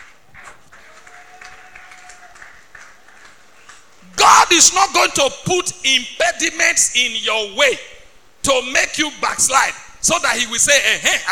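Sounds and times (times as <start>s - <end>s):
audience clapping: 0.0s - 3.9s
speech: 4.5s - 11.3s.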